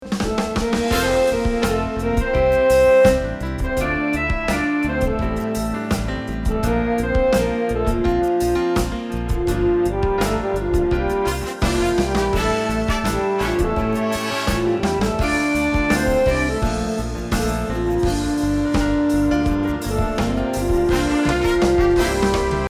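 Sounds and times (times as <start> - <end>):
music: 0.0 - 22.6.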